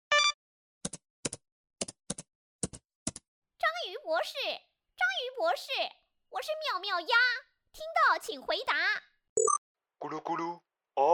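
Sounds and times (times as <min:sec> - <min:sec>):
speech: 0:03.8 - 0:09.1, 0:10.0 - 0:11.1
bright electronic beep: 0:09.4 - 0:09.6.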